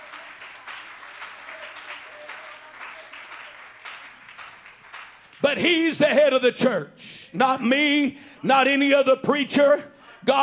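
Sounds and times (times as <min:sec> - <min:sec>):
crowd clapping hands: 0:00.0 - 0:05.9
speech: 0:05.4 - 0:10.4.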